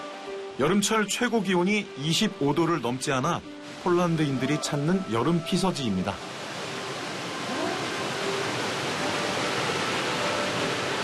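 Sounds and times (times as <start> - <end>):
waterfall: 0.0 - 11.0
speech: 0.6 - 6.4.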